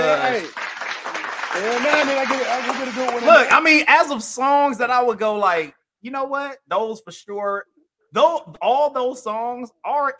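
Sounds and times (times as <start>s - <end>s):
applause: 0.0s - 3.6s
speech: 0.1s - 0.6s, 1.5s - 10.1s.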